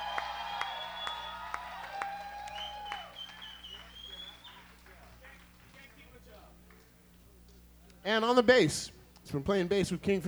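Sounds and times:
crowd roar: 0.0s - 5.2s
shrill whistles: 0.0s - 5.4s
audience applause: 0.0s - 7.0s
speech: 8.1s - 10.2s.

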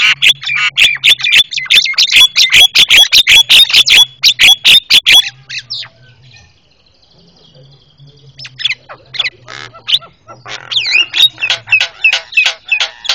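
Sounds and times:
Javan myna calls: 0.0s - 6.6s, 8.3s - 13.1s.

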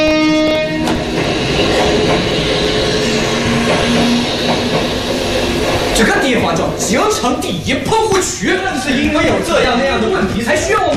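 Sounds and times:
high tonal whine: 0.0s - 7.8s
train rolling past a shantytown in Beijing: 0.0s - 10.9s
speech: 6.0s - 10.9s.

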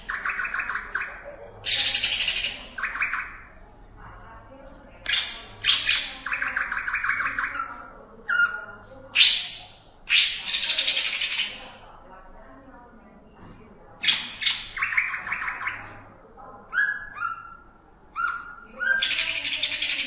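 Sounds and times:
greater green leafbird song: 0.0s - 3.6s, 5.1s - 11.8s, 14.0s - 16.0s, 16.8s - 20.0s.

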